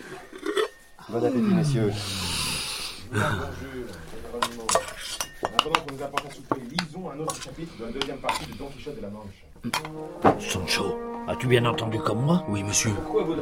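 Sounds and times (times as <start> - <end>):
dishes and cutlery clinking at an inn's supper table: 0.0 - 1.0, 4.2 - 8.9, 9.6 - 10.5
speech: 1.1 - 2.3, 3.1 - 4.8, 5.4 - 13.3.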